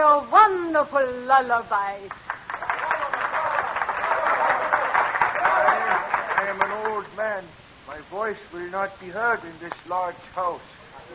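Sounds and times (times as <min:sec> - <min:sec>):
speech: 0:00.2 - 0:02.3, 0:06.4 - 0:11.1
audience applause: 0:02.1 - 0:07.1.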